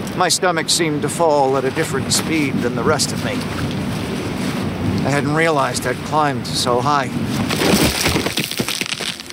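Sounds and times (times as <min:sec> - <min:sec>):
speech: 0:00.2 - 0:03.8, 0:05.0 - 0:08.2
loud wet crunch of body hitting ground: 0:07.4 - 0:09.3.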